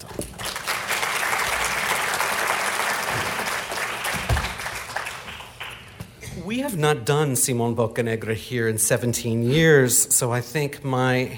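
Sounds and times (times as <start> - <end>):
audience applause welcoming an opera singer at a recital series: 0.0 - 6.0
speech: 6.5 - 11.3.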